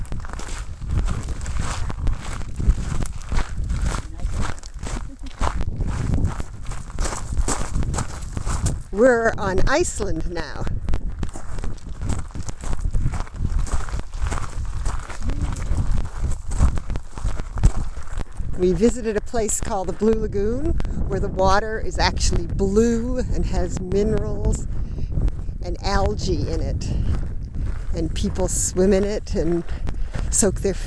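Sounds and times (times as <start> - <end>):
footsteps crunching on loose lava rock: 0.0 - 9.0, 10.7 - 18.6, 27.0 - 29.0
speech: 9.0 - 10.8, 18.6 - 24.7, 25.7 - 27.1, 28.0 - 30.8.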